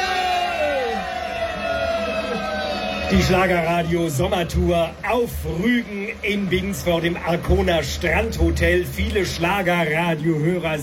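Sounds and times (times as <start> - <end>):
high whoops and yells: 0.0 - 3.3
audience cheering: 0.0 - 10.8
speech: 3.1 - 10.8.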